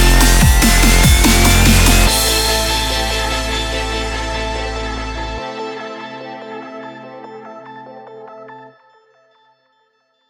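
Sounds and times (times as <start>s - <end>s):
aggressive hi tech extreme sport dubstep music: 0.0s - 5.6s.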